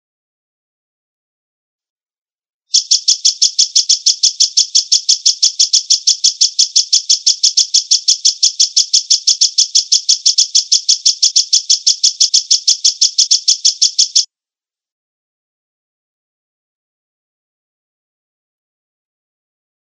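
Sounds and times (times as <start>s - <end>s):
Java sparrow song of short clicking high notes: 2.7s - 14.3s.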